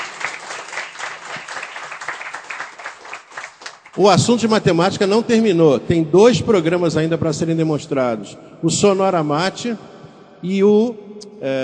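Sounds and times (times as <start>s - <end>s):
audience applause: 0.0s - 4.0s
speech: 4.0s - 11.6s.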